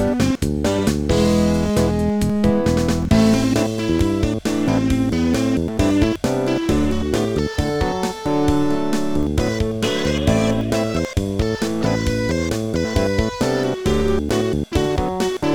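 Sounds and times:
rock bass guitar: 0:00.0 - 0:15.5.

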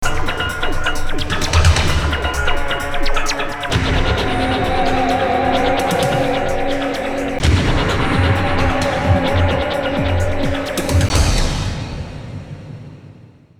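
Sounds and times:
jungle combo drum loop: 0:00.0 - 0:13.0.

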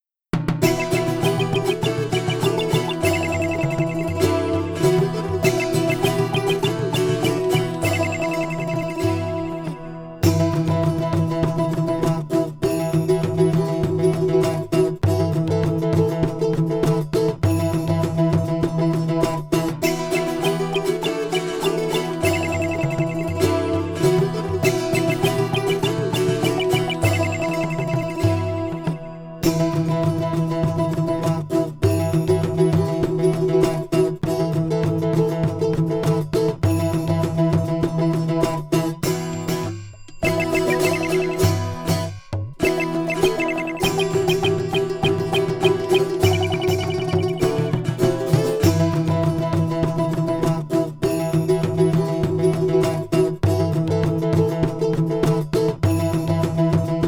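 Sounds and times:
ethnic music: 0:00.4 - 0:57.0.

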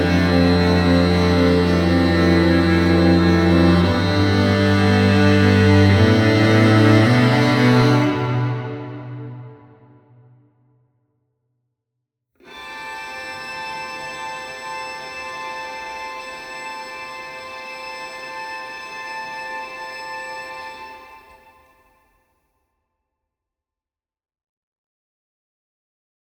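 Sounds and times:
string quartet: 0:00.0 - 0:09.6, 0:12.4 - 0:21.5.

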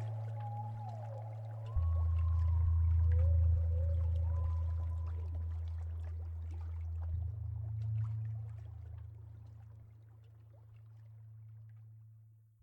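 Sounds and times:
ambient music: 0:00.0 - 0:09.6.

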